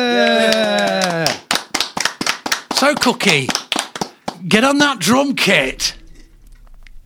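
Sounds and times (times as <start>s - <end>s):
applause: 0.2s - 4.5s
speech: 2.9s - 3.6s, 4.4s - 6.0s.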